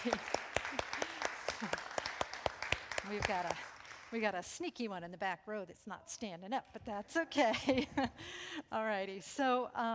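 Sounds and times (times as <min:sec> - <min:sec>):
speech: 0:00.0 - 0:00.4, 0:03.1 - 0:09.9
group applause: 0:00.0 - 0:04.2.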